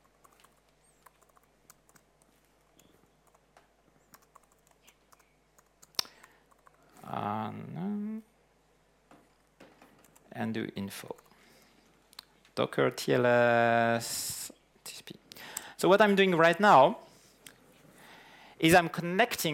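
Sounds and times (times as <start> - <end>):
typing a host name on a computer keyboard during a Docker setup: 0.0 - 3.5, 4.1 - 6.8
speech: 10.4 - 11.2, 12.6 - 14.4, 15.8 - 17.0, 18.6 - 19.5.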